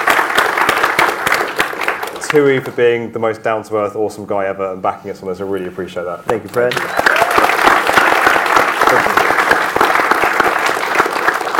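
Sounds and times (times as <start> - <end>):
audience applause: 0.0 - 2.6, 6.6 - 11.5
speech: 2.3 - 7.0.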